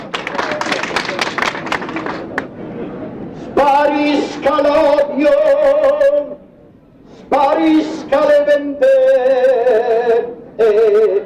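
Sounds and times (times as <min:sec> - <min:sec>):
audience applauding: 0:00.0 - 0:02.5
speech: 0:04.4 - 0:06.4, 0:07.3 - 0:11.2.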